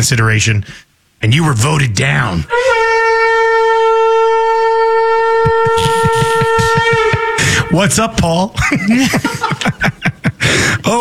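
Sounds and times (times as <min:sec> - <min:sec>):
speech: 0:00.0 - 0:02.8, 0:05.6 - 0:07.0, 0:07.7 - 0:09.9
conch shell horn blast: 0:02.5 - 0:07.8
laughter: 0:05.1 - 0:10.9.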